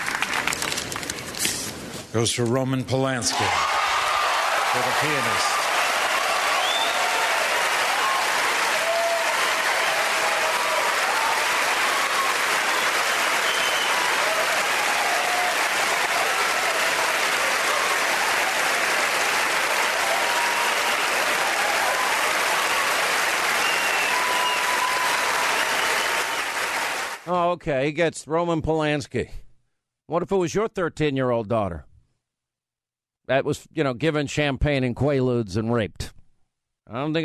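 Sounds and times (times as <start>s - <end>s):
Academy Awards audience applause for Roman Polanski winning for The Pianist: 0.0s - 1.4s, 3.4s - 27.3s
speech: 2.1s - 3.8s, 4.7s - 5.6s, 27.6s - 29.4s, 30.1s - 31.9s, 33.3s - 36.2s, 36.9s - 37.2s.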